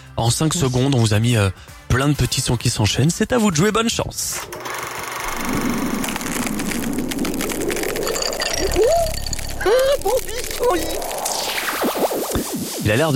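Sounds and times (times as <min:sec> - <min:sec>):
speech: 0:00.2 - 0:04.7, 0:09.6 - 0:11.1, 0:12.5 - 0:13.1
ice cubes clinking: 0:05.2 - 0:11.4.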